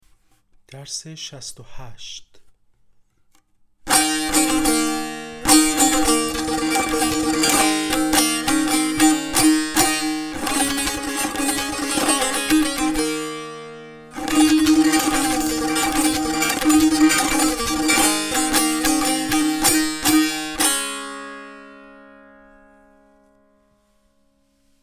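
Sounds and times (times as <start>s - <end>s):
tanbur practice: 3.9s - 23.3s.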